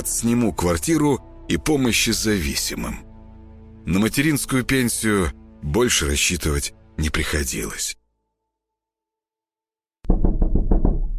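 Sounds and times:
speech: 0.0s - 3.1s, 3.9s - 8.0s
insistent knocking on the front door of a home: 10.0s - 11.1s.

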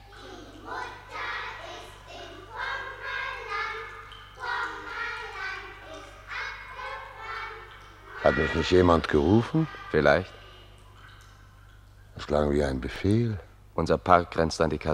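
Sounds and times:
children singing a song while dancing in a ring: 0.0s - 10.7s
speech: 8.3s - 10.4s, 12.3s - 14.9s.

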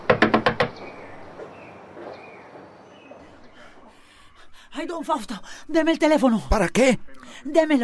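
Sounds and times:
door being kicked and pounded: 0.0s - 0.9s
speech: 4.8s - 7.8s.

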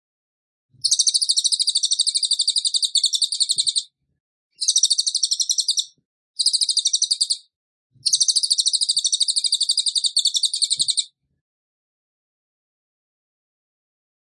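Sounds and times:
tembakan bird song: 0.8s - 3.8s, 4.6s - 7.4s, 8.1s - 11.1s.

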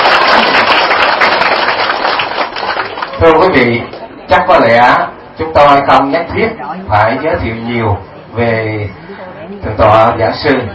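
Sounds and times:
audience applause: 0.0s - 3.4s
speech: 3.2s - 10.7s.

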